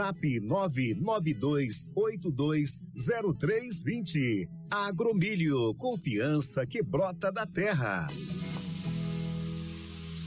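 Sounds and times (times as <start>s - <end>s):
speech: 0.0s - 8.4s
shower running water: 8.1s - 10.2s.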